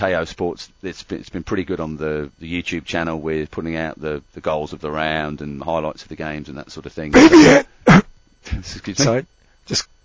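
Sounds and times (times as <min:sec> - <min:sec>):
speech: 0:00.0 - 0:09.9
person coughing: 0:07.2 - 0:08.1.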